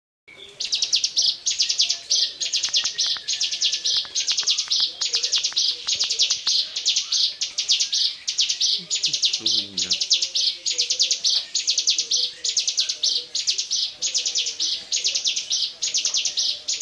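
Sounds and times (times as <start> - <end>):
bar-winged prinia song: 0.3 - 16.8
faint clicks: 2.6 - 6.6.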